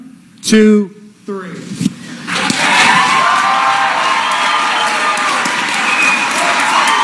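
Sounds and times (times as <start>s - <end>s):
speech: 0.4s - 1.7s
crowd cheering in a standing ovation: 2.3s - 7.0s.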